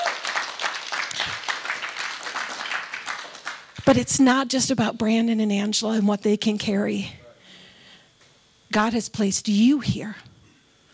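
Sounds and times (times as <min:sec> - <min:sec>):
audience applause: 0:00.0 - 0:03.8
speech: 0:03.9 - 0:07.2, 0:08.7 - 0:10.3.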